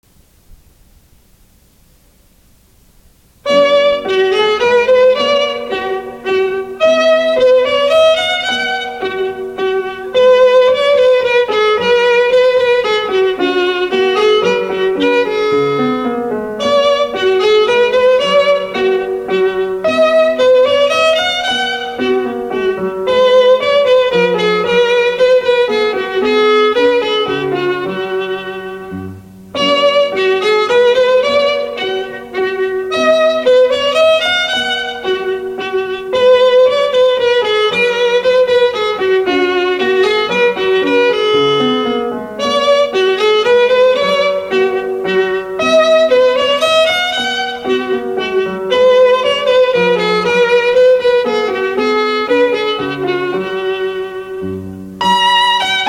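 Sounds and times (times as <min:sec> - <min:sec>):
minuet: 0:03.4 - 0:55.8.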